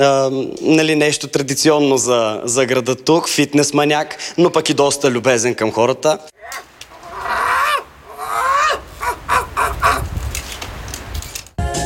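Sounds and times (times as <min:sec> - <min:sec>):
speech: 0:00.0 - 0:06.7
seagull calling loudly: 0:06.4 - 0:10.2.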